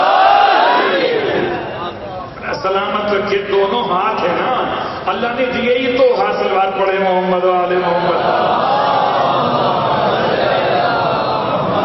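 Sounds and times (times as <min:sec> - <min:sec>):
crowd shouting in unison answering a chant call: 0:00.0 - 0:01.7, 0:08.2 - 0:11.8
speech: 0:03.3 - 0:08.8.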